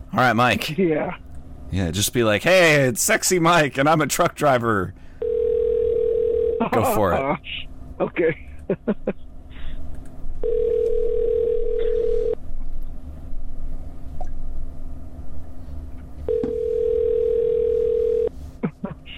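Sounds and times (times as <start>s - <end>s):
low hum: 0.0s - 19.1s
speech: 0.1s - 5.0s, 6.6s - 9.2s
unanswered phone call ringback tones: 5.2s - 6.6s, 10.4s - 12.4s, 16.3s - 18.3s.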